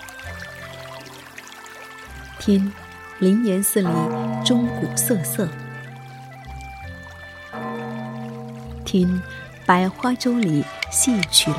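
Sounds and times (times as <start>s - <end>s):
spring water trickling and tinkling: 0.0s - 11.5s
speech: 2.4s - 5.6s, 8.9s - 11.5s.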